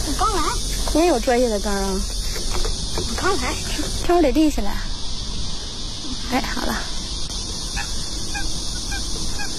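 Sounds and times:
speech: 0.1 - 2.2, 3.0 - 4.9, 6.3 - 7.0
ducks quacking in a quiet park: 7.7 - 9.5.

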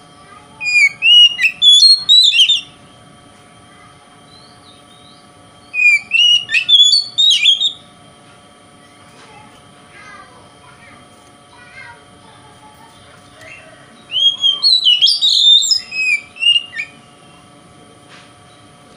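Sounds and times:
Oriental magpie-robin song: 0.6 - 2.8, 4.3 - 7.8, 13.0 - 17.5, 18.5 - 18.9.

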